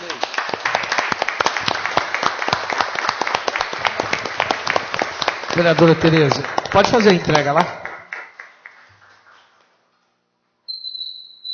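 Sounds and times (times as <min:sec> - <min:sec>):
standing applause: 0:00.0 - 0:09.6
speech: 0:05.6 - 0:07.8.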